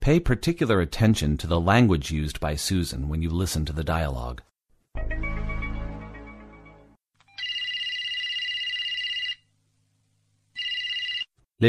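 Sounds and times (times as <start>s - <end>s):
speech: 0.0s - 5.2s
electronic trilling telephone ring for an incoming business call: 7.3s - 9.4s, 10.6s - 11.3s.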